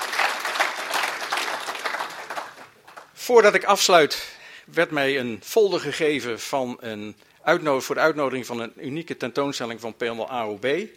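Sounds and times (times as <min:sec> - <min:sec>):
audience applause: 0:00.0 - 0:03.1
speech: 0:03.2 - 0:10.9.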